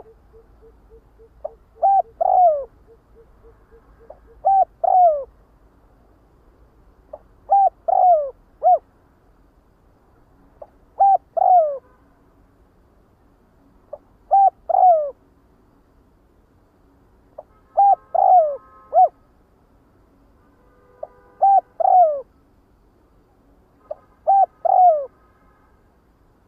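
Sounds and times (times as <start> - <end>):
spotted dove cooing: 0.0 - 5.3, 7.1 - 8.9, 10.6 - 11.8, 13.9 - 15.2, 17.8 - 19.1, 21.4 - 22.3, 23.9 - 25.1.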